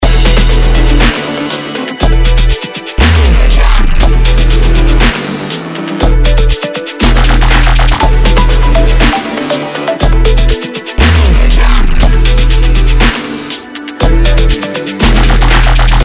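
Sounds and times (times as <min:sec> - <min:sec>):
chillstep music: 0:00.0 - 0:16.0.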